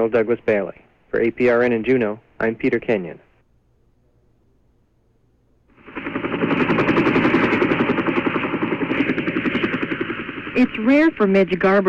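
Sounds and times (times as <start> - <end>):
speech: 0.0 - 3.2, 10.6 - 11.8
helicopter arriving: 5.7 - 11.8.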